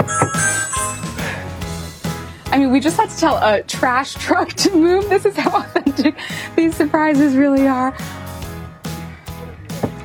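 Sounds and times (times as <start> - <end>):
doorbell ringing: 0.0 - 1.5
speech: 2.6 - 8.2.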